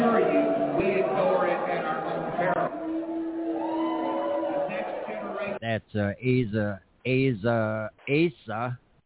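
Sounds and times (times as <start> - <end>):
crowd booing: 0.0 - 5.6
people shouting: 2.8 - 5.6
speech: 5.8 - 8.8.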